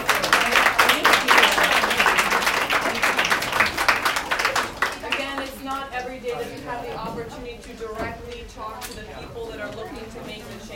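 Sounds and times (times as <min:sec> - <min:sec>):
audience applause: 0:00.0 - 0:05.5.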